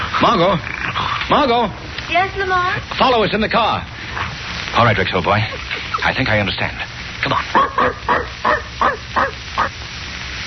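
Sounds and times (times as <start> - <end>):
speech: 0.2 - 3.9, 4.7 - 9.3
dog barking: 7.5 - 9.7.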